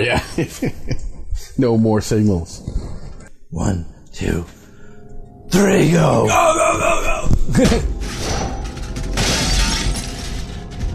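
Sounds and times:
speech: 0:00.0 - 0:01.0, 0:01.6 - 0:02.7, 0:03.5 - 0:04.6, 0:05.5 - 0:08.2
door being busted down: 0:07.8 - 0:10.9.

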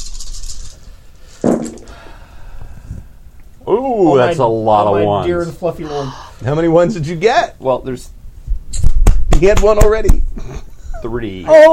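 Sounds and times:
rolling ten dice: 0:00.0 - 0:00.8
speech: 0:03.7 - 0:08.2, 0:09.4 - 0:11.7.

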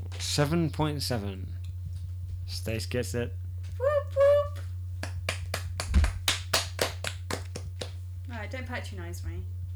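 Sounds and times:
speech: 0:00.2 - 0:01.6, 0:02.5 - 0:03.9, 0:08.5 - 0:09.6
short hand clapping: 0:04.6 - 0:08.0.

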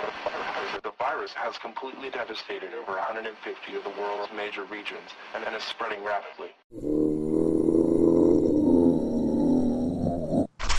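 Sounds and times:
speech: 0:00.2 - 0:07.0
zombie growling: 0:06.7 - 0:10.6.

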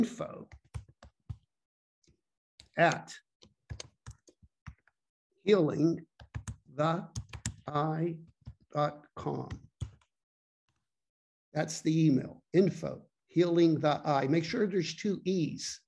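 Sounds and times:
speech: 0:00.0 - 0:00.6, 0:02.8 - 0:03.2, 0:05.5 - 0:06.1, 0:06.8 - 0:09.7, 0:11.6 - 0:15.8
typing an email address on a computer keyboard: 0:00.5 - 0:01.4, 0:02.6 - 0:05.0, 0:06.2 - 0:07.7, 0:09.4 - 0:10.1.

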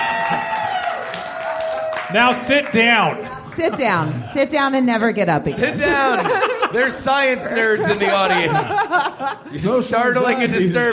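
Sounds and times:
audience applause: 0:00.0 - 0:04.3
speech: 0:02.1 - 0:10.9
laughter: 0:03.2 - 0:04.8, 0:05.4 - 0:10.9.

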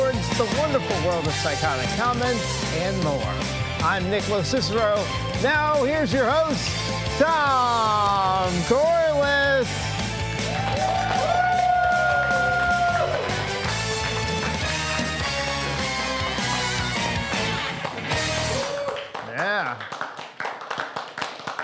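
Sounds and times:
speech: 0:00.4 - 0:09.8
audience cheering and applause: 0:10.0 - 0:21.6.

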